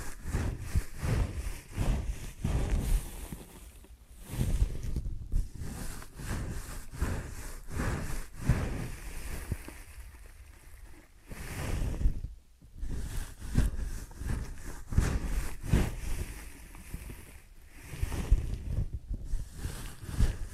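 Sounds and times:
ear and scalp massage and cleaning: 0.0 - 12.2, 12.8 - 20.5.

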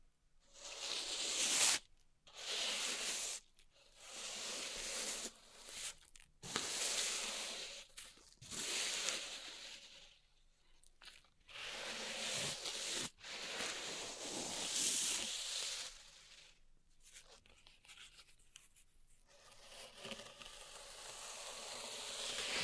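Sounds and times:
pink salt raked and rubbed in a zen garden: 0.5 - 10.2, 11.1 - 16.5, 20.9 - 22.6.

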